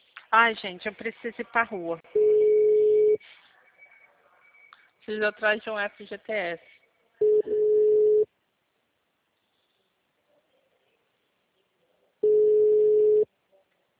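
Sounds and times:
speech: 0:00.3 - 0:02.5, 0:05.1 - 0:06.8
telephone line beeps: 0:02.2 - 0:03.2, 0:07.2 - 0:08.2, 0:12.2 - 0:13.2.

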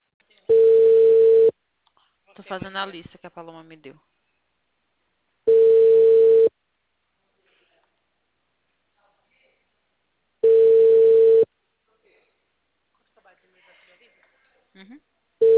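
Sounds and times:
telephone line tone beeps of a busy number: 0:00.5 - 0:01.5, 0:05.5 - 0:06.5, 0:10.4 - 0:11.5
speech: 0:02.5 - 0:04.2, 0:14.8 - 0:15.1.

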